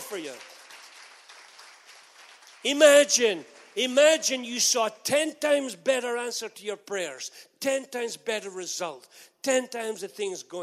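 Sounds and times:
crowd applause: 0.0 - 3.9
speech: 0.1 - 0.6, 2.6 - 10.6.

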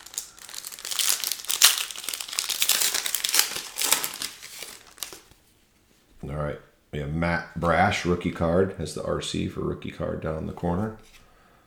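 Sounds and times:
foil wrapper of a Topps Gallery baseball card pack being torn open: 0.0 - 5.4
speech: 6.2 - 11.2.

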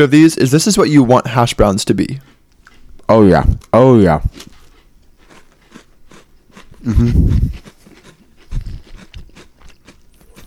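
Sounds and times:
speech: 0.0 - 2.3, 3.1 - 4.5, 6.8 - 7.7
crunching thin crispy packaged cookies: 3.7 - 10.4.

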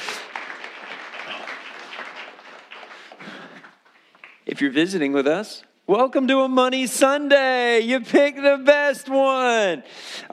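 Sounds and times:
audience applause at a Sunday gathering: 0.0 - 4.4
speech: 4.5 - 10.3.

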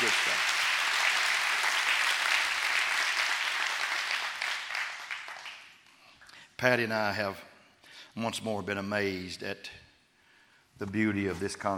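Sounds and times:
audience clapping hands: 0.0 - 6.2
speech: 6.6 - 7.5, 8.2 - 9.8, 10.8 - 11.7.

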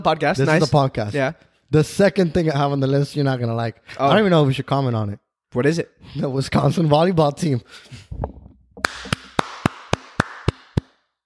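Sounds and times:
speech: 0.0 - 8.4
hand clapping: 8.8 - 11.1.

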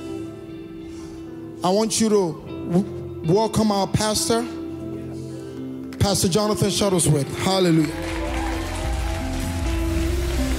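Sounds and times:
speech: 1.6 - 4.6, 6.0 - 8.2
audience applause: 7.9 - 10.5.

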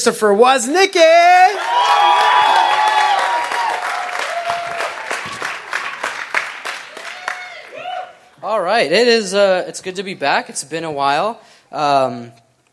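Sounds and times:
speech: 0.0 - 2.1, 8.5 - 12.4
crowd applause in a standing ovation for a speaker: 1.6 - 8.2.

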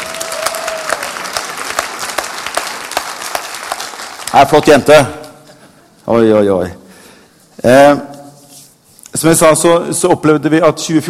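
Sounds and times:
audience applause: 0.0 - 4.6
speech: 4.4 - 5.2, 6.1 - 6.8, 7.6 - 8.1, 9.2 - 11.0.

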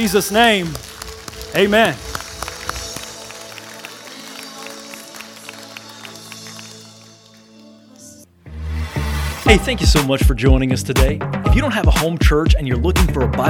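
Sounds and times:
speech: 0.0 - 0.9, 1.5 - 2.1, 9.5 - 13.4
audience clapping: 0.0 - 8.1.

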